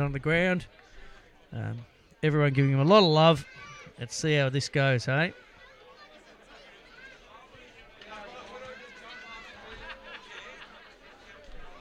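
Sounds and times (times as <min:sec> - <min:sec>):
speech: 0:00.0 - 0:00.9, 0:01.5 - 0:05.5
football crowd murmur: 0:00.0 - 0:11.7
laughter in football crowd: 0:09.4 - 0:11.1.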